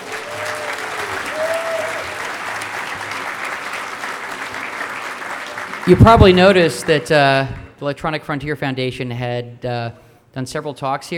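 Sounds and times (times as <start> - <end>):
audience applause: 0.0 - 7.3
faint whistle or cheer: 0.1 - 2.2
speech: 5.9 - 11.1.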